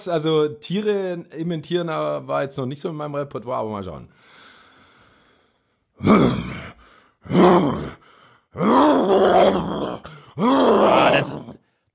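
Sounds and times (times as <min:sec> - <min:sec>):
speech: 0:00.0 - 0:04.3, 0:06.0 - 0:06.5, 0:07.3 - 0:11.6
person imitating a lion roaring: 0:06.0 - 0:08.0, 0:08.6 - 0:11.6.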